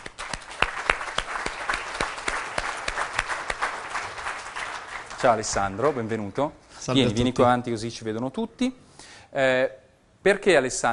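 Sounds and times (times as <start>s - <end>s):
audience applause: 0.0s - 6.1s
speech: 5.2s - 10.9s.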